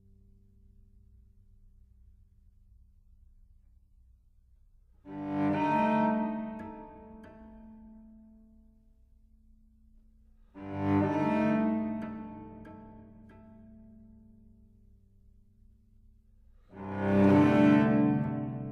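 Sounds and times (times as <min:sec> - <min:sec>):
cello sonata: 0:04.7 - 0:18.6.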